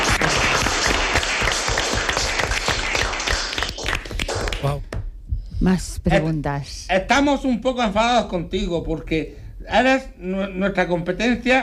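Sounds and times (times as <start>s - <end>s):
audience applause: 0.0s - 4.8s
speech: 5.6s - 11.6s.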